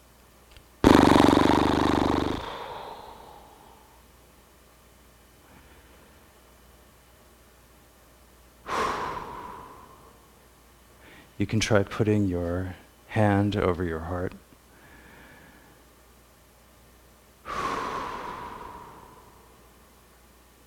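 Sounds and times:
horse breath, slow lip-fluttering exhale: 0.9 - 4.0, 17.5 - 19.6
speech: 11.4 - 14.4.

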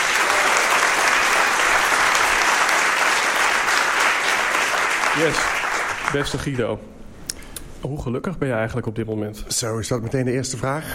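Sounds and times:
warm audience applause: 0.0 - 6.6
speech: 5.2 - 7.0, 7.8 - 10.9.

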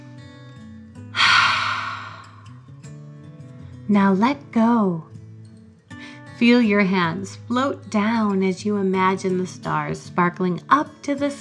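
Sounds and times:
slow breath during a children's guided breathing exercise: 1.2 - 2.6
speech: 3.9 - 5.1, 6.4 - 11.3.

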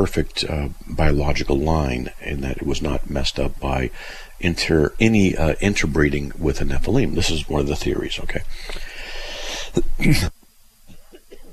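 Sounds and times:
speech: 0.0 - 8.9, 9.8 - 10.3
person coughing: 10.9 - 11.5.

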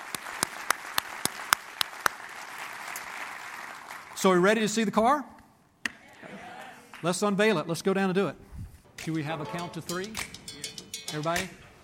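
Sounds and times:
hand claps: 0.0 - 4.0, 10.1 - 10.5
speech: 4.2 - 5.3, 7.0 - 8.4, 9.0 - 10.3, 11.1 - 11.6.

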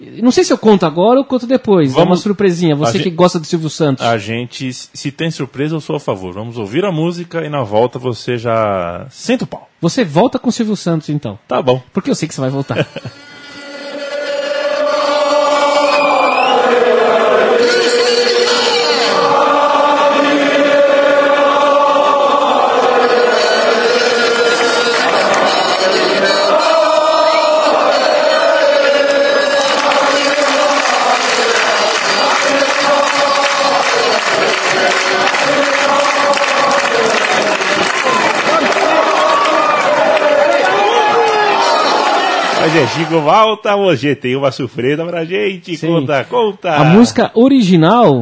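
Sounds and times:
speech: 0.0 - 13.4, 42.7 - 48.2
laughter: 12.5 - 13.3
football supporters singing a chant: 13.8 - 43.2.

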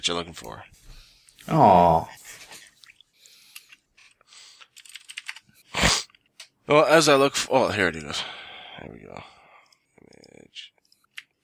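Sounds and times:
speech: 0.0 - 0.8, 1.5 - 2.2, 6.7 - 9.3
typing a search for Metroid on a computer keyboard: 4.6 - 5.5.

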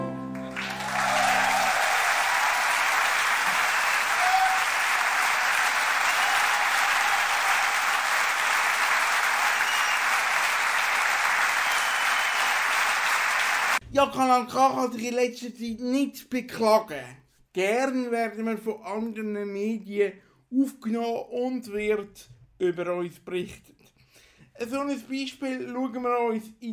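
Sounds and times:
audience applause: 0.0 - 13.8
speech: 14.0 - 23.8, 24.6 - 26.7.

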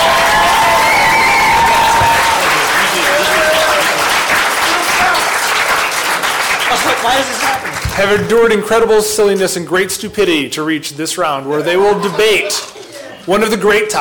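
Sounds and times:
audience applause: 0.0 - 8.2
speech: 7.0 - 7.4, 8.0 - 14.0.

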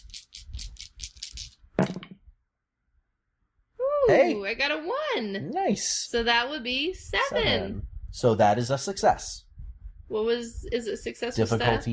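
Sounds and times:
dice shaken in a cup: 0.0 - 1.6
dice spilling and clattering: 0.0 - 2.1
speech: 4.1 - 9.4, 10.1 - 11.9.

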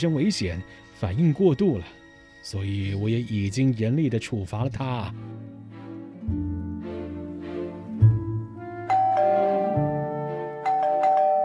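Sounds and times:
speech: 0.0 - 5.7
doorbell ringing: 8.9 - 11.4.

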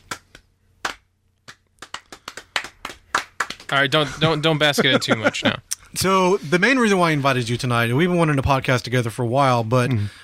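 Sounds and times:
slow clap: 0.0 - 3.8
speech: 3.7 - 10.2
laughter: 3.8 - 5.6.

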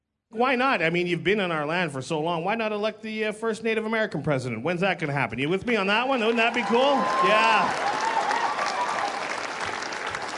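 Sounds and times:
speech: 0.3 - 8.0
audience clapping at a stand-up comedy show: 5.7 - 10.3.

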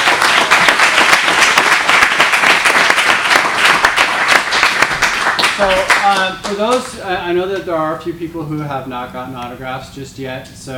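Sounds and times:
audience applause at an autograph event: 0.0 - 6.9
speech: 5.6 - 10.7.

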